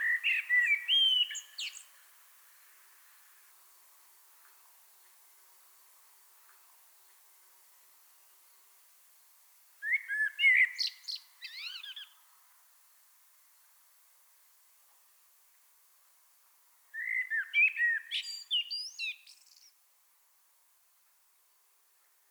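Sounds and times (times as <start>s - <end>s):
common blackbird song: 0.0s - 3.3s, 9.8s - 12.3s, 16.9s - 19.8s.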